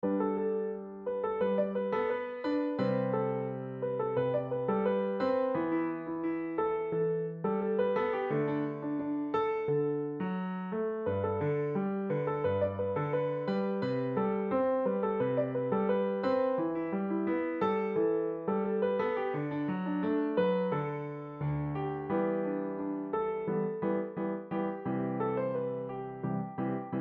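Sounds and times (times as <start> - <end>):
solo piano: 0.0 - 27.0.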